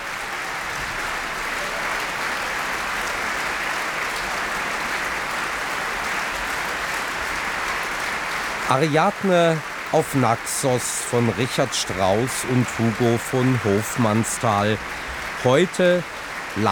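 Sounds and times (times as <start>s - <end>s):
opera audience applause: 0.0s - 16.7s
laughter: 8.7s - 16.7s
speech: 8.7s - 16.7s.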